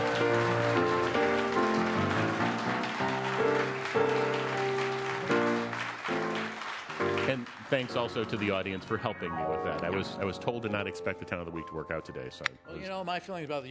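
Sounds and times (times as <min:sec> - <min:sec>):
audience applause: 0:00.0 - 0:10.0
loud sustained instrumental music: 0:00.0 - 0:12.9
speech: 0:07.7 - 0:13.7.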